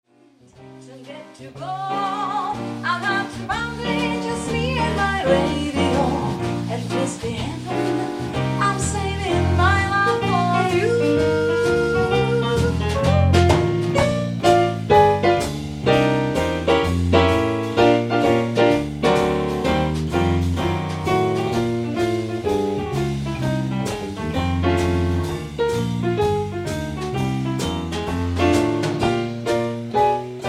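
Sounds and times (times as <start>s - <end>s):
jazz standard: 0.1s - 30.4s.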